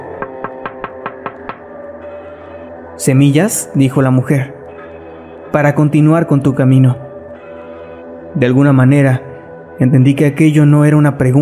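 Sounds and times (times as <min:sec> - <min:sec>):
raps on a car window glass: 0:00.2 - 0:01.7
speech: 0:03.0 - 0:04.6, 0:05.5 - 0:07.0, 0:08.4 - 0:11.4.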